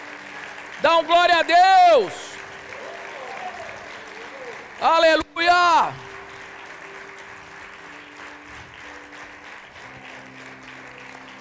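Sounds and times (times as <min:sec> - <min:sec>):
audience applause: 0:00.0 - 0:11.4
speech: 0:00.8 - 0:02.2, 0:04.8 - 0:06.0.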